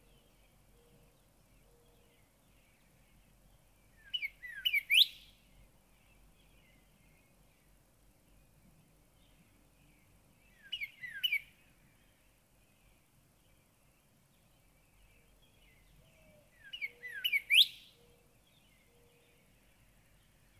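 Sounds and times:
Northern cardinal song of bright slurred whistled notes: 4.0 - 5.3, 10.5 - 11.5, 16.2 - 18.3.

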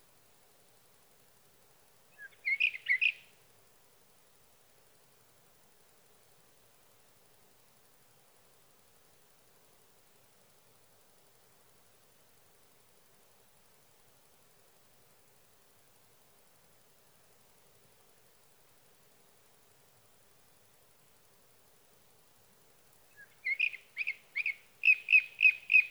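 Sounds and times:
Sage thrasher singing at night: 2.2 - 3.2, 23.2 - 25.8.

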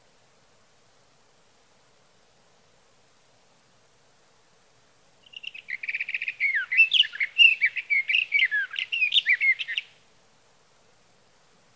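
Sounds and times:
Sage thrasher warbling song: 5.3 - 9.9.

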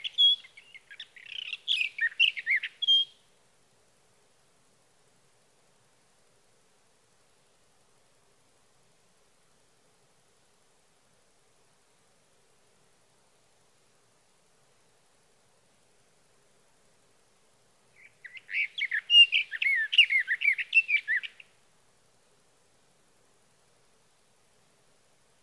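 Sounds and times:
sage thrasher: 0.0 - 3.1, 18.0 - 21.4.

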